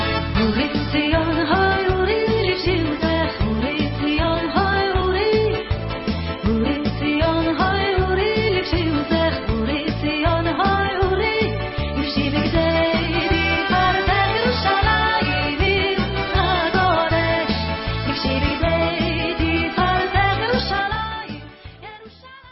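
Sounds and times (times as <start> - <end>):
vocals: 0.2 - 22.4.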